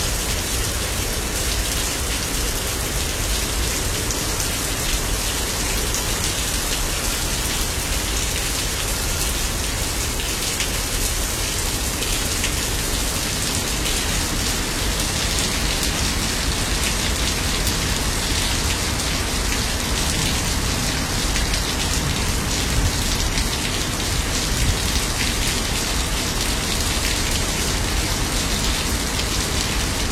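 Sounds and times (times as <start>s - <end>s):
heavy rain on a city balcony: 0.0s - 30.1s.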